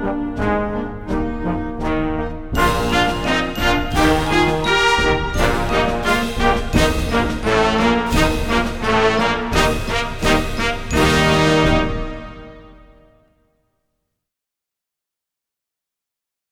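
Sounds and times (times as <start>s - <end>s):
military march: 0.0s - 13.2s.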